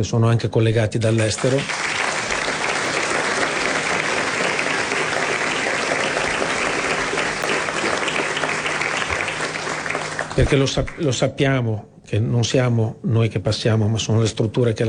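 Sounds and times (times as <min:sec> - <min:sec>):
speech: 0:00.0 - 0:02.0, 0:10.4 - 0:14.8
audience applause: 0:01.1 - 0:11.2.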